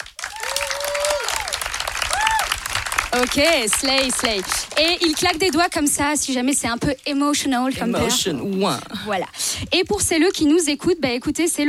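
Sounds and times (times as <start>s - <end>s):
live audience applauding: 0.0s - 6.0s
whistles and cheers: 0.2s - 2.6s
speech: 3.1s - 11.6s.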